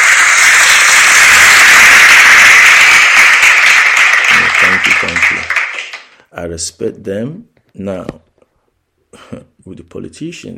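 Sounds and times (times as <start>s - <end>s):
audience applause: 0.0s - 6.2s
speech: 4.8s - 5.5s, 6.3s - 8.3s, 9.2s - 10.5s.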